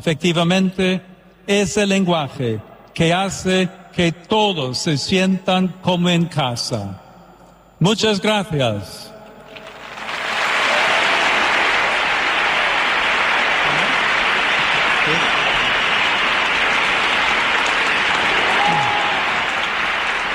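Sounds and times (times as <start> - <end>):
speech: 0.0 - 7.0, 7.8 - 9.1
stadium crowd of 70,000 applauding: 9.6 - 20.3.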